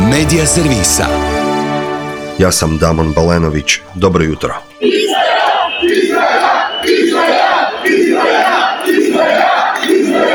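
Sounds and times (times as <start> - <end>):
speech: 0.2 - 1.4, 2.4 - 9.6
protest crowd chanting at a rally: 3.8 - 10.3.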